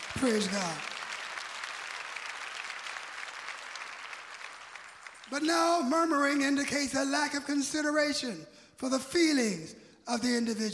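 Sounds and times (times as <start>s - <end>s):
audience clapping hands: 0.0s - 6.8s
speech: 0.2s - 0.9s, 5.3s - 10.7s.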